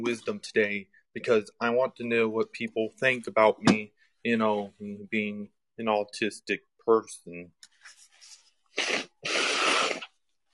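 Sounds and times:
speech: 0.0s - 7.6s
person blowing nose on a microphone: 8.6s - 10.2s.

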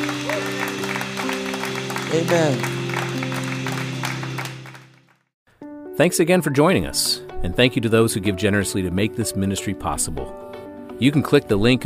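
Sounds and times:
congregation clapping hands during a church service: 0.0s - 5.3s
speech: 2.1s - 2.8s, 6.0s - 10.4s, 11.0s - 11.8s.

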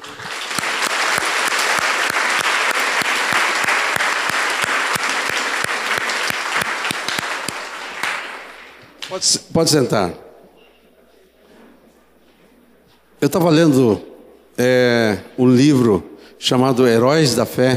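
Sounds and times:
audience applauding: 0.0s - 9.1s
speech: 9.2s - 10.2s, 13.2s - 17.7s.

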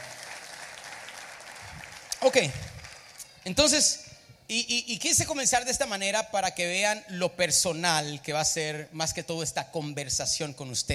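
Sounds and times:
audience applause: 0.0s - 3.2s
speech: 2.2s - 2.7s, 3.4s - 10.9s.

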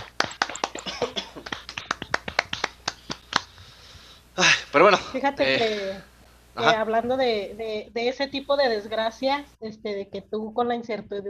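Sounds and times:
applause from a few people, hands clapping: 0.0s - 3.6s
speech: 4.4s - 11.2s.

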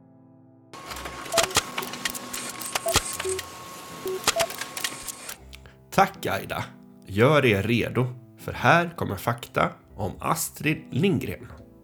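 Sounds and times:
printer printing a page of facts: 0.8s - 5.4s
short tonal beeps: 2.8s - 4.6s
speech: 6.0s - 11.6s.

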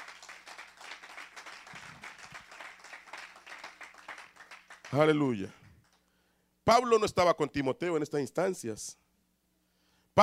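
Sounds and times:
audience applause: 0.0s - 5.2s
speech: 4.9s - 5.6s, 6.6s - 9.0s.

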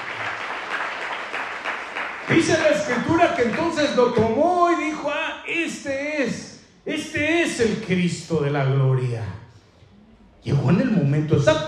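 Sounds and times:
crowd applause: 0.0s - 3.6s
speech: 2.3s - 9.4s, 10.4s - 11.6s.

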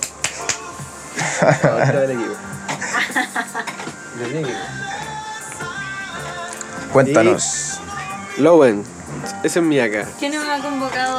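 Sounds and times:
brief clapping for a guest: 0.0s - 0.9s
laughter: 0.4s - 5.4s
speech: 1.4s - 2.5s, 3.1s - 5.1s, 6.9s - 11.1s.

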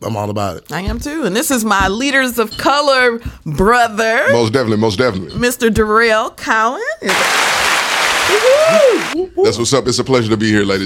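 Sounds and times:
speech: 0.0s - 7.6s, 8.3s - 10.8s
group hand clapping: 7.1s - 9.2s
rising and falling vocal whoop: 8.3s - 9.2s.

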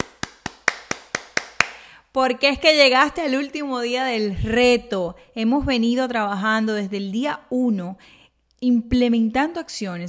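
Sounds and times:
sharp hand claps: 0.0s - 1.9s
speech: 2.1s - 10.0s.

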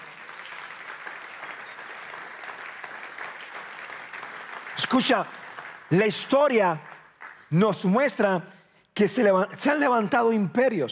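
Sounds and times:
audience applauding: 0.0s - 8.0s
speech: 4.8s - 6.9s, 7.5s - 10.8s.

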